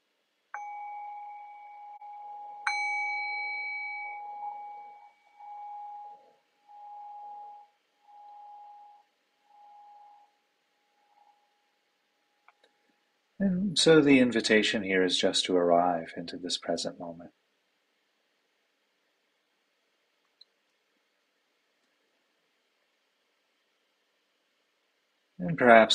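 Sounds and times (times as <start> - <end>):
meditation bell ringing: 0.5 - 11.8
speech: 13.4 - 17.4, 25.6 - 25.9.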